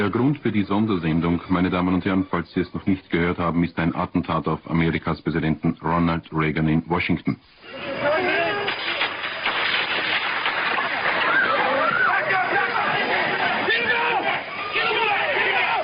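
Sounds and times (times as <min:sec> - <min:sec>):
speech: 0:00.0 - 0:08.4
panicked crowd shouting and yelling: 0:07.6 - 0:15.8.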